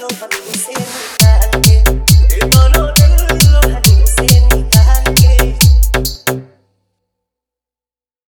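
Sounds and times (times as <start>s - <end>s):
Bhojpuri DJ remix song with vibration bass: 0.0s - 6.5s.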